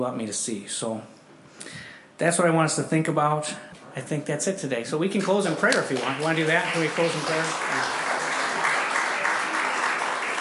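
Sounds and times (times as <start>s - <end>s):
speech: 0.0s - 8.0s
audience clapping: 5.2s - 10.3s.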